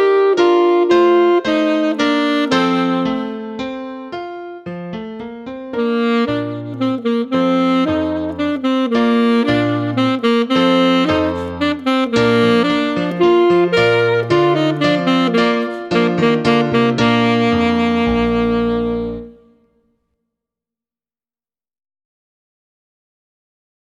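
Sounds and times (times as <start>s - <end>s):
baritone saxophone playing a minuet: 0.0s - 4.1s, 5.4s - 19.7s.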